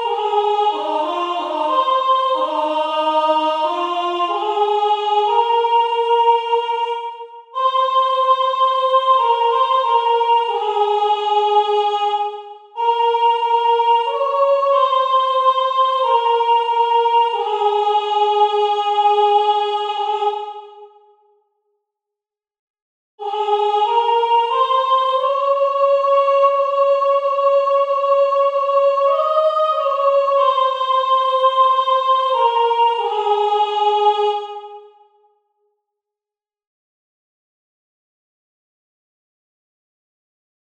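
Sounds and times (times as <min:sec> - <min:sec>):
soprano singing: 0:00.0 - 0:20.8, 0:23.2 - 0:34.9.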